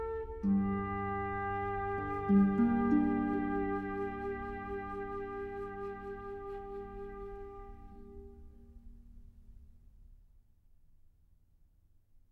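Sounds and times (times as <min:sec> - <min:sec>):
flute and keyboard sonata: 0:00.0 - 0:08.4.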